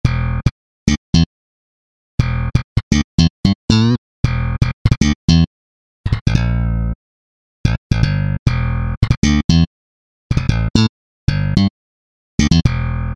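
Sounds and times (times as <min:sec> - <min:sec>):
slap bass: 0:00.0 - 0:01.3, 0:02.2 - 0:05.5, 0:06.1 - 0:07.0, 0:07.6 - 0:09.7, 0:10.3 - 0:11.7, 0:12.4 - 0:13.1.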